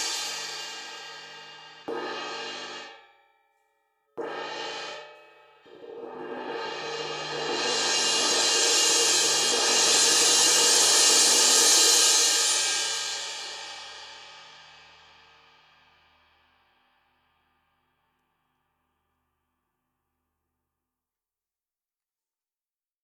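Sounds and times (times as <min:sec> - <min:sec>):
cymbal: 0:00.0 - 0:03.4, 0:04.2 - 0:17.9.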